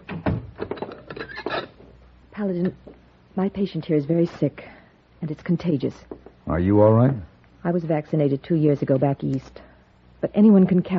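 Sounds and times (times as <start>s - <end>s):
wooden door thudding shut: 0.1s - 0.6s
speech: 2.4s - 9.6s, 10.2s - 10.9s.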